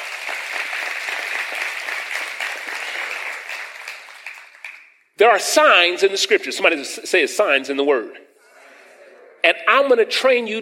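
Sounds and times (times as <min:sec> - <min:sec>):
audience applauding: 0:00.0 - 0:04.9
speech: 0:05.2 - 0:08.2, 0:09.4 - 0:10.6.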